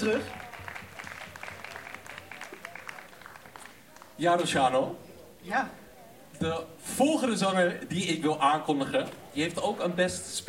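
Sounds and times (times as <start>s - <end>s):
speech: 0.0s - 0.4s, 4.2s - 5.8s, 6.4s - 10.4s
audience applause: 0.0s - 4.2s.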